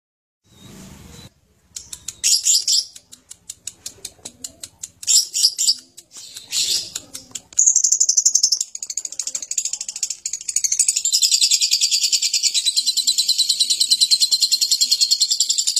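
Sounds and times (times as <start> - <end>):
lovebird ngekek chattering song: 4.5 - 15.7.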